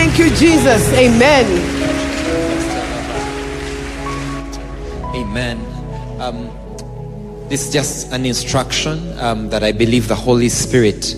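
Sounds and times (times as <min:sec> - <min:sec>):
audience clapping hands: 0:00.0 - 0:05.3
speech: 0:00.2 - 0:02.7, 0:05.2 - 0:06.6, 0:07.5 - 0:11.1.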